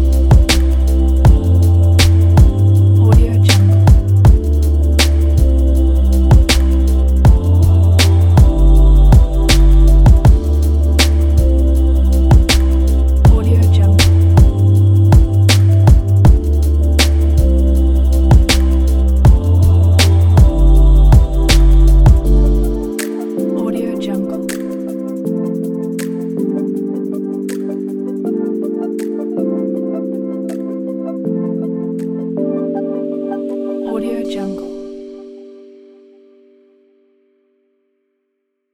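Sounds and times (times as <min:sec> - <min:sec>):
abstract beat: 0:00.0 - 0:30.9.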